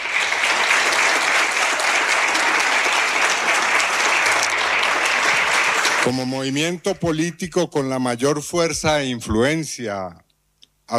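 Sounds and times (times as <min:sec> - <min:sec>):
audience applause: 0:00.0 - 0:06.8
speech: 0:06.1 - 0:10.2.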